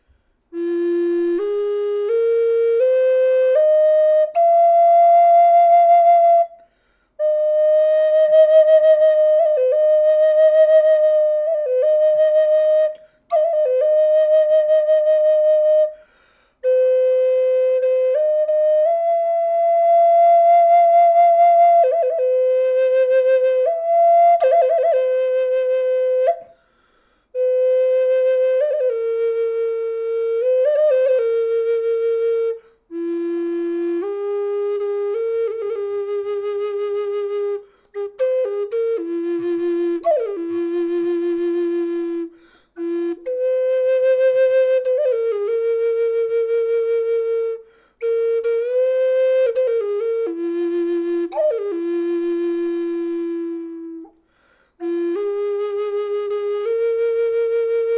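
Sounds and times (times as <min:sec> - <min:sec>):
natural flute: 0:00.0 - 0:57.9.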